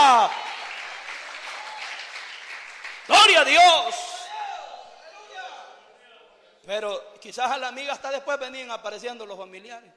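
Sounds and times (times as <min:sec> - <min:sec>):
congregation applause during a Spanish-language church service: 0:00.0 - 0:04.6
speech: 0:03.3 - 0:04.1, 0:06.7 - 0:09.9.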